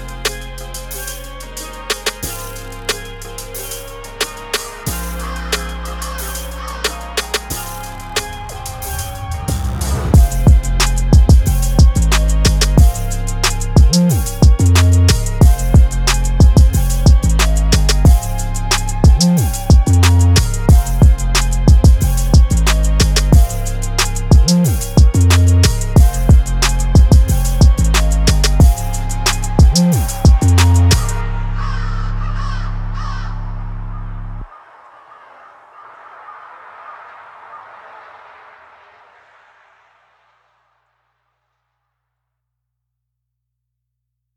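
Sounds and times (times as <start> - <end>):
music beat: 0.0 - 32.0.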